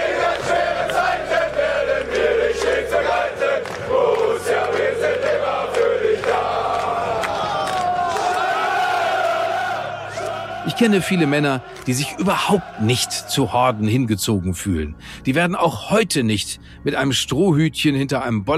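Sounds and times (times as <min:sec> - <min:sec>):
large crowd of football fans shouting and roaring: 0:00.0 - 0:14.1
speech: 0:10.8 - 0:18.5.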